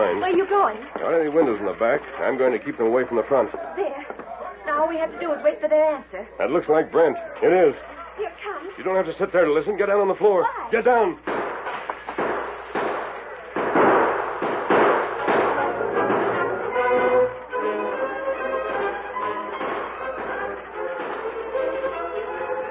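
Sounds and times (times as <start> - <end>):
speech: 0.0 - 11.3
gunfire in a western-style shootout: 11.2 - 22.7.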